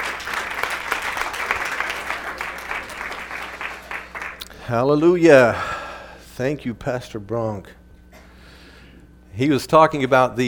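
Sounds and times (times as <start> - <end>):
church congregation clapping to welcome a guest speaker: 0.0 - 4.5
speech: 4.7 - 5.7, 6.4 - 7.8, 9.4 - 10.4.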